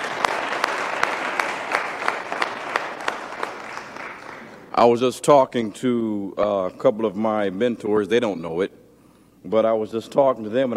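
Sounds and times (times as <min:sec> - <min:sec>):
audience applause: 0:00.0 - 0:04.6
speech: 0:04.8 - 0:08.8, 0:09.4 - 0:10.7.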